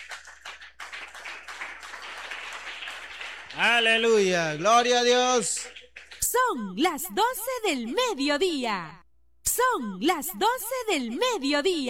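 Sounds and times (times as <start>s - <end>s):
crowd applauding: 0.0s - 7.9s
speech: 3.6s - 9.0s, 9.6s - 11.8s.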